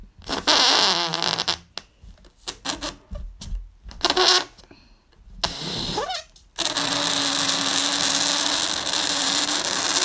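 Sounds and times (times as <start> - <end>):
balloon rubber squeals: 0.2 - 1.8, 2.4 - 3.2, 4.0 - 4.6, 5.4 - 10.0
breath blowing up a balloon: 0.2 - 3.2, 5.3 - 10.0.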